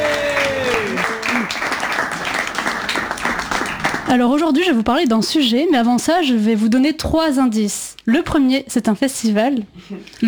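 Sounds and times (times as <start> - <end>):
audience applause greeting a comedian taking the stage: 0.0 - 4.3
speech: 4.1 - 10.2.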